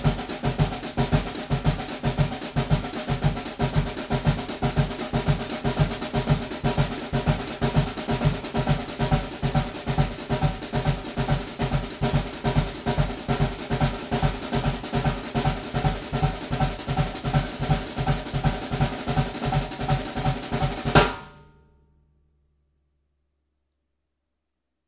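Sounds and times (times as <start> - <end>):
samba percussion drumming: 0.0 - 21.2.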